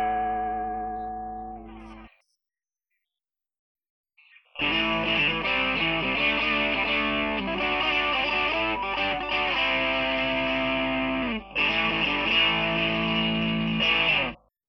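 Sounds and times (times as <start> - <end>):
guitar through a transistor booster pedal: 0.0 - 1.9, 4.6 - 14.4.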